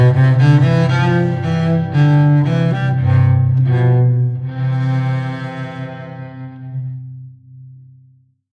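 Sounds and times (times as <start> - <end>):
violins with bass bar: 0.0 - 7.1.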